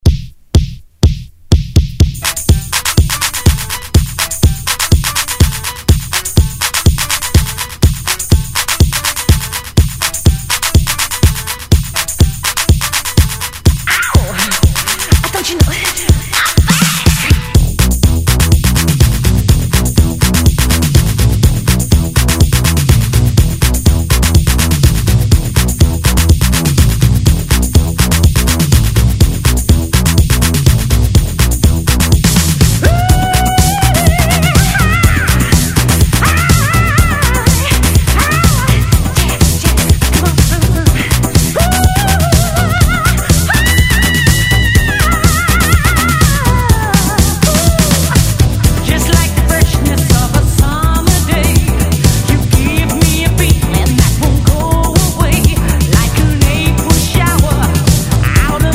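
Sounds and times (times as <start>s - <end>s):
disco music: 0.0s - 58.7s.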